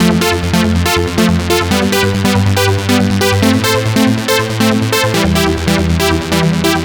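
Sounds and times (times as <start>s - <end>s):
NRG trance synth arpeggio: 0.0s - 6.8s.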